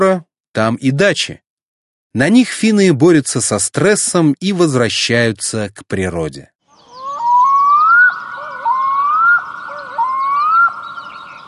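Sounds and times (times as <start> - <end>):
speech: 0.0 - 1.4, 2.1 - 6.5
black-throated loon calling at lake shores on a summer night: 6.7 - 11.4.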